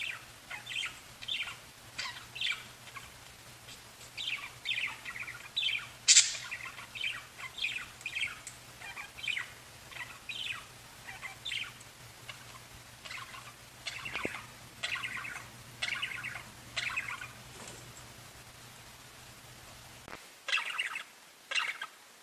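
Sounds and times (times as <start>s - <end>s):
faint low hum: 0.0s - 22.2s
budgerigar chattering: 4.2s - 17.3s, 20.5s - 21.9s.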